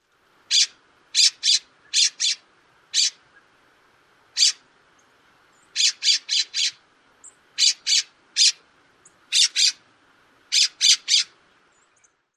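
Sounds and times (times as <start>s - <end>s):
calls: 0.5s - 3.5s, 4.4s - 4.7s, 5.6s - 9.8s, 10.5s - 11.4s.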